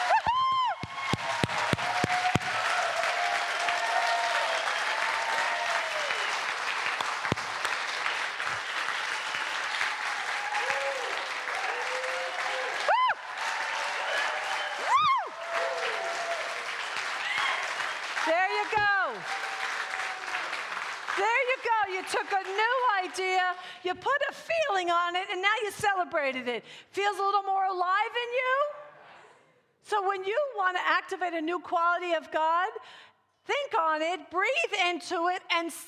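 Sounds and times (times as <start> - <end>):
scattered whoops and cheers: 0.0 - 6.5, 8.9 - 20.6
crowd applause: 0.0 - 22.8
speech: 23.8 - 28.7, 29.9 - 35.8.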